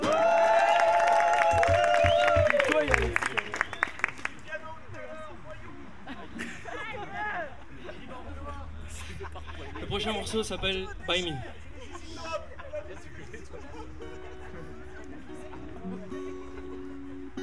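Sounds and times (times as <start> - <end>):
audience applause: 0.0 - 4.4
laughter: 1.4 - 3.9, 5.9 - 17.4
speech: 10.1 - 11.6.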